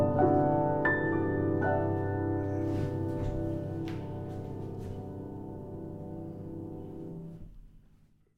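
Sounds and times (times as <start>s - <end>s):
Yamaha G3 piano: 0.0s - 8.3s.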